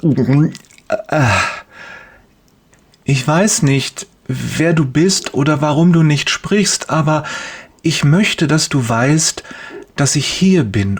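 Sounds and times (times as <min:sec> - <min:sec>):
speech: 0:00.0 - 0:01.6, 0:03.1 - 0:10.9
nervous gulp voiced in the throat: 0:00.0 - 0:01.8
breathy exhale: 0:01.2 - 0:02.2, 0:07.2 - 0:07.8, 0:09.4 - 0:09.9.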